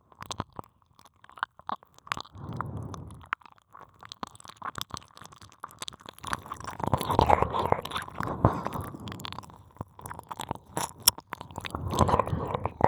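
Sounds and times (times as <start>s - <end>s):
ear licking sounds on left and right simultaneously: 6.2s - 12.8s.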